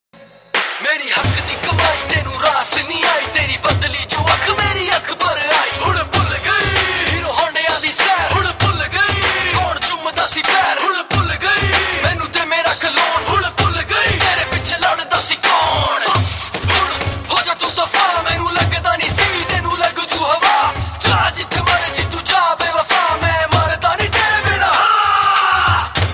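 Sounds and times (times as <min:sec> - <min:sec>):
dhol drumming: 0:00.5 - 0:26.1.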